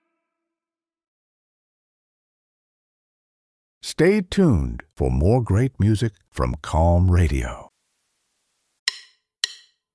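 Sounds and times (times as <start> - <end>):
speech: 4.0 - 7.7
wooden drumsticks clicking together to count off the tempo: 8.9 - 9.9.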